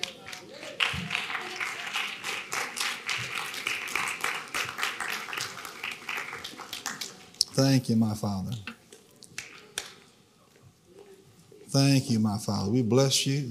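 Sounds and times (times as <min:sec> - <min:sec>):
audience hand clapping: 0:00.0 - 0:07.5, 0:09.3 - 0:10.1
speech: 0:07.6 - 0:08.7, 0:11.7 - 0:13.4.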